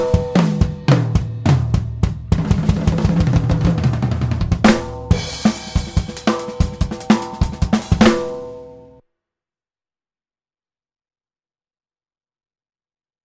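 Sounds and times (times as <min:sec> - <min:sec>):
unprocessed drums: 0:00.0 - 0:09.0.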